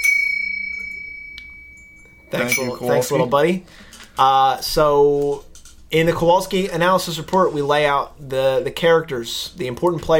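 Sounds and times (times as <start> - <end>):
bell ringing: 0.0 - 3.3
speech: 2.3 - 10.1.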